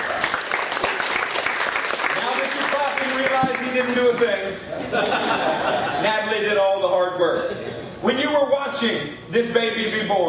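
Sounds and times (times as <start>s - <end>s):
audience hand clapping: 0.0s - 4.4s
speech: 3.3s - 10.2s
laughter: 4.7s - 6.5s.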